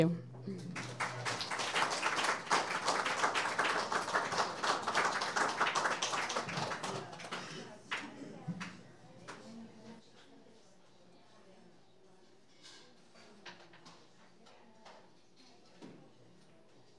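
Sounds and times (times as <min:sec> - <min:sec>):
audience applause: 0:00.6 - 0:08.2.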